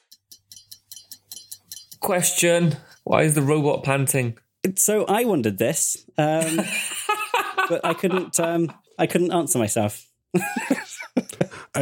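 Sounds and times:
countdown clock ticking: 0.0 - 3.4
speech: 2.0 - 6.9, 7.7 - 10.7
laughter: 6.4 - 8.8, 10.4 - 11.7.

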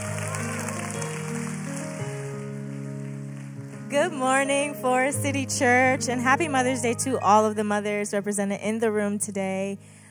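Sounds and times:
church audience clapping for mothers during a Mother's Day service: 0.0 - 4.0
speech: 3.9 - 10.0.

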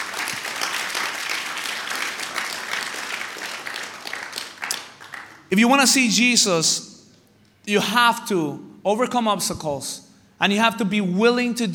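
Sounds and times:
audience applause: 0.0 - 5.5
speech: 5.5 - 6.9, 7.7 - 11.7.

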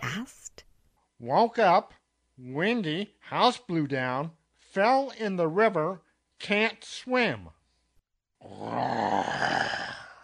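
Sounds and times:
speech: 1.2 - 7.6, 8.4 - 9.8
loud heffalump growl: 8.4 - 10.2.

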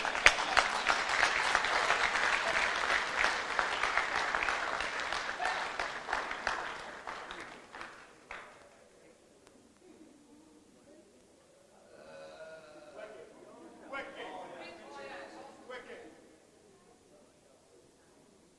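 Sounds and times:
crowd clapping hands: 0.0 - 8.8.

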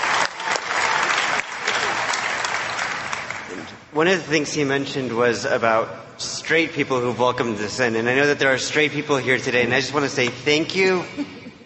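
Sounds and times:
audience applause: 0.0 - 3.8
speech: 3.9 - 11.4.

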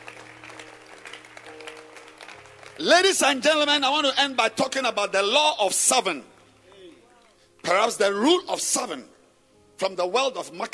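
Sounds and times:
church congregation clapping hands: 0.0 - 5.0, 5.8 - 8.1
speech: 2.8 - 6.3, 7.7 - 9.1, 9.8 - 10.7.

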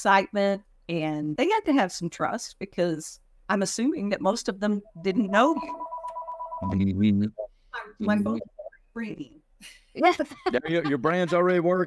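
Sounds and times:
speech: 0.0 - 5.9, 6.6 - 11.8
telephone ringing: 4.9 - 6.9
laughter: 8.0 - 8.4, 10.0 - 11.8.

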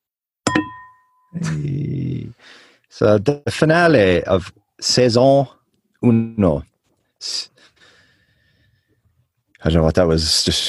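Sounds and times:
crystal glasses clinking together: 0.5 - 1.4
speech: 1.3 - 7.6, 9.6 - 10.6.

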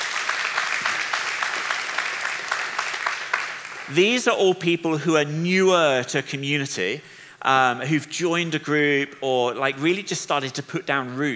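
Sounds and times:
audience applause: 0.0 - 4.1
speech: 3.9 - 11.3.

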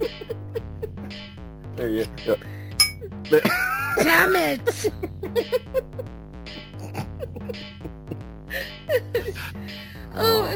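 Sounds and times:
laughter: 0.0 - 1.2, 3.3 - 9.4
speech: 1.8 - 2.6, 3.3 - 6.2
bell being rung: 2.8 - 3.0.

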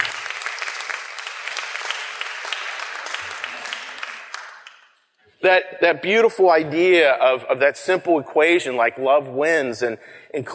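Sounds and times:
audience applause: 0.0 - 4.8
speech: 5.4 - 10.5.

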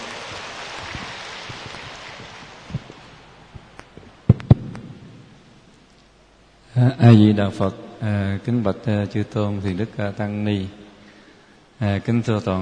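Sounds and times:
crowd applause: 0.0 - 3.3
speech: 6.8 - 10.8, 11.8 - 12.6.

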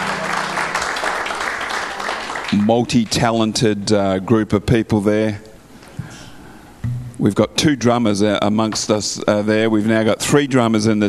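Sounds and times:
church congregation applauding the worship team: 0.0 - 2.9
speech: 2.5 - 5.5, 7.2 - 11.0.

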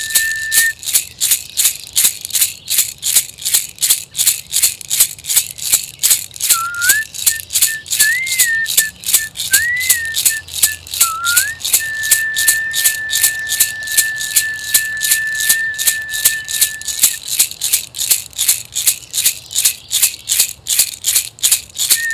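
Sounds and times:
thin high whistle tone: 0.0 - 0.8, 6.5 - 17.2, 21.9 - 22.1
rattle shaking: 0.0 - 22.1.

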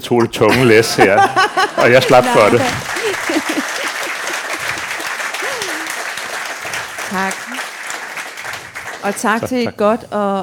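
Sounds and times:
speech: 0.0 - 3.7, 7.1 - 7.5, 9.0 - 10.4
laughter: 0.0 - 6.0, 9.1 - 10.0
audience applause: 1.8 - 9.8.

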